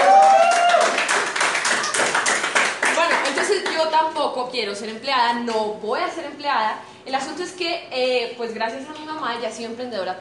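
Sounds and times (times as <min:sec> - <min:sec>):
audience applause: 0:00.0 - 0:03.5
speech: 0:03.8 - 0:10.1.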